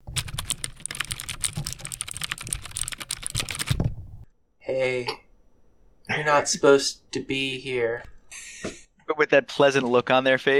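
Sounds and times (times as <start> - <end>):
fast typing on a mechanical keyboard: 0.0 - 4.0
speech: 4.7 - 5.2, 6.2 - 10.5.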